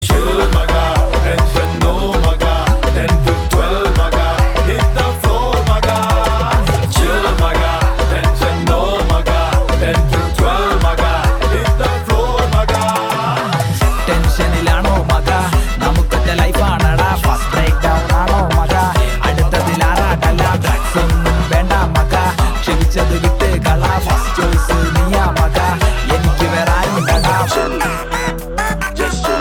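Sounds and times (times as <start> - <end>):
chill BGM ringtone: 0.0 - 29.3.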